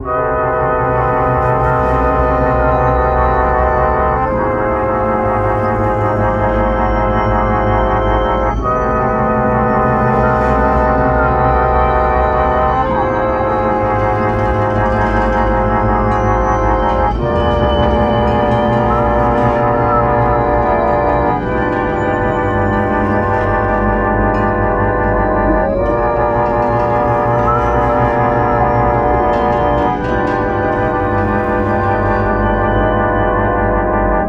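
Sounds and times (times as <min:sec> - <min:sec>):
scary music loop: 0:00.0 - 0:34.2.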